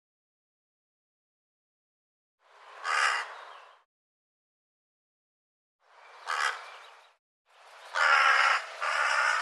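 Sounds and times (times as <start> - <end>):
bird cawing: 2.8 - 3.6, 6.2 - 6.9, 7.9 - 9.4.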